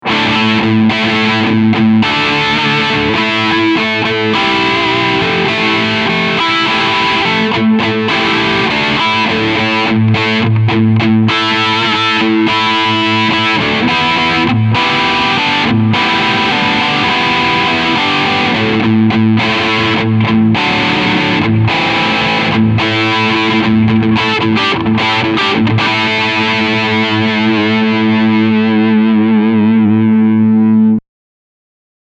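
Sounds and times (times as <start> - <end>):
medium gain distorted guitar: 0.0 - 31.0.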